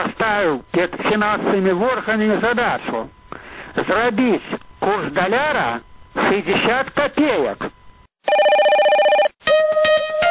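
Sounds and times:
speech: 0:00.0 - 0:08.5
telephone ringing in a radio call-in show jingle: 0:08.2 - 0:09.4.

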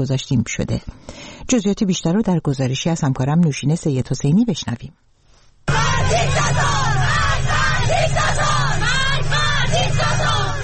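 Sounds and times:
speech: 0:00.0 - 0:05.1
schoolgirls chanting protest slogans: 0:05.7 - 0:10.6.

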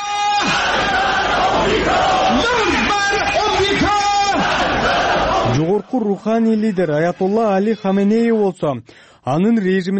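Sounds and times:
massed voices chanting anti-US slogans at a pro-government street demonstration: 0:00.4 - 0:05.7
speech: 0:03.2 - 0:09.9.

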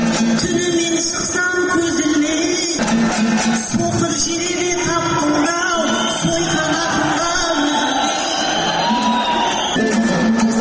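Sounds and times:
audience clamouring at a Kazakh aitys: 0:00.0 - 0:10.6
people shouting and whooping: 0:02.9 - 0:10.2.

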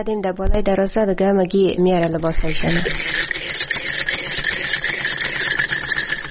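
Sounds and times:
speech: 0:00.0 - 0:03.3
sewing machine running: 0:02.4 - 0:06.2.

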